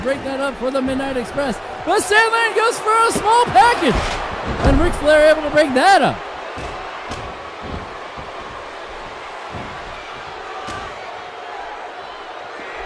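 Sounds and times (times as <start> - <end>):
speech: 0.0 - 6.8
constant loud wrestling crowd roar: 0.0 - 12.8
professional wrestler slammed onto the ring mat with a DDT: 6.6 - 11.0.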